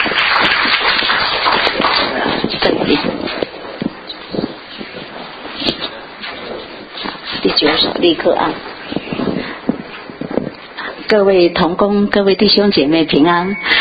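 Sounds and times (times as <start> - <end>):
people clapping in welcome: 0.0 - 7.9
speech: 7.6 - 8.7, 11.1 - 13.7.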